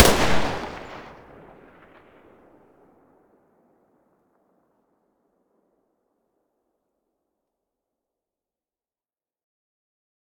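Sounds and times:
Vector gun muzzle blast in mono: 0.0s - 1.2s.

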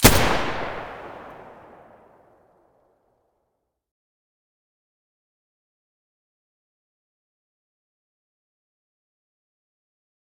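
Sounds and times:
G36 rifle muzzle gunshots: 0.0s - 2.0s.

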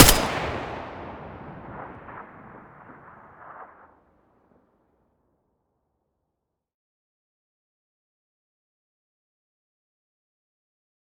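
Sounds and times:
M4A1 rifle gunshot: 0.0s - 2.4s.

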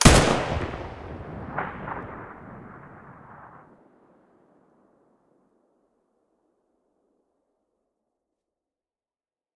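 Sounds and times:
AK105 muzzle blast in stereo: 0.0s - 2.8s.

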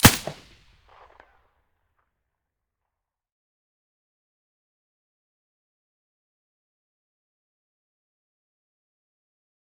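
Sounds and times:
suppressed gunshot: 0.0s - 1.0s.

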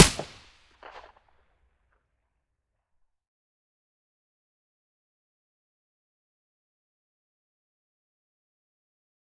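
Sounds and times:
silenced gunshot: 0.0s - 1.0s.

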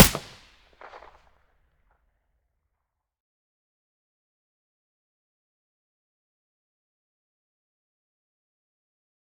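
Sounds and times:
silenced gunshot: 0.0s - 1.0s.

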